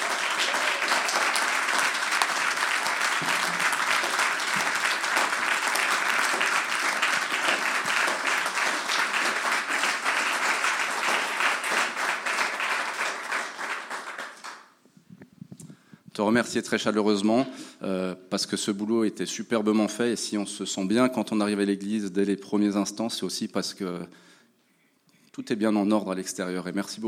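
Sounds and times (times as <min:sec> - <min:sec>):
audience applause: 0:00.0 - 0:14.7
speech: 0:16.2 - 0:24.4, 0:25.4 - 0:27.0.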